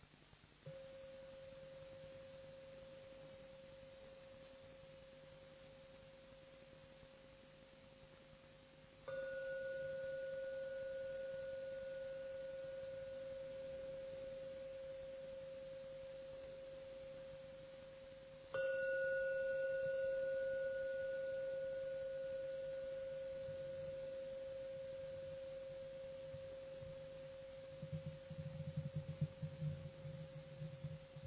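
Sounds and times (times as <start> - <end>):
meditation gong ringing: 9.1 - 17.5, 18.5 - 31.2.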